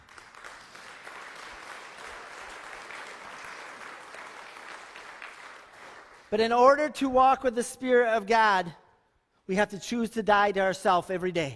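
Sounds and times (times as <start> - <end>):
audience applause: 0.0 - 6.3
speech: 6.3 - 8.8, 9.5 - 11.5.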